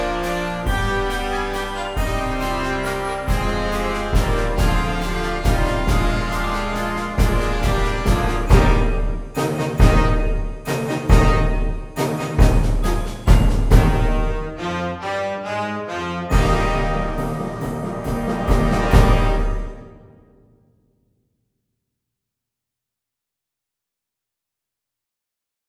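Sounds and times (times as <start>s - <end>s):
waltz music: 0.0s - 20.0s.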